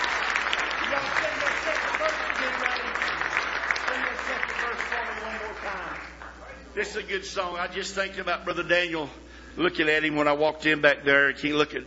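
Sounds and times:
large audience clapping hands in praise: 0.0s - 6.5s
speech: 6.8s - 11.8s.

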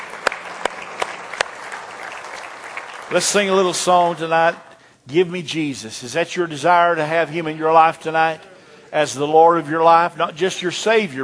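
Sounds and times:
church congregation applauding the streamers: 0.0s - 4.5s
speech: 3.1s - 11.2s.

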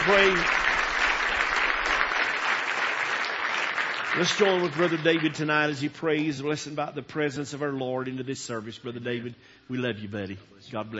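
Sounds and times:
speech: 0.0s - 0.6s, 4.2s - 10.9s
audience clapping hands in praise: 0.0s - 6.0s.

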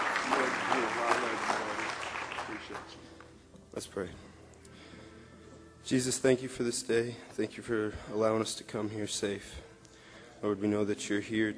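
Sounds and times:
audience clapping hands in praise: 0.0s - 3.3s
speech: 3.8s - 4.3s, 5.9s - 9.7s, 10.4s - 11.5s.

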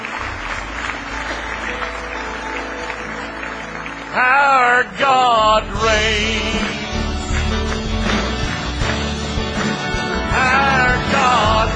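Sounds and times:
crowd clapping: 0.0s - 11.7s
speech: 4.2s - 6.7s.

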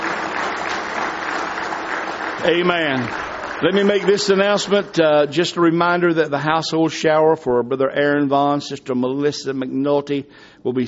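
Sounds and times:
church congregation applauding in praise at a morning service: 0.0s - 5.7s
speech: 2.4s - 10.8s.

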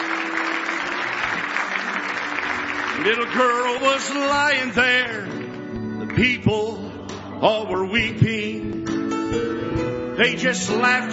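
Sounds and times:
congregation clapping hands in praise during a morning church service: 0.0s - 6.4s
speech: 3.0s - 5.4s, 6.2s - 11.1s.

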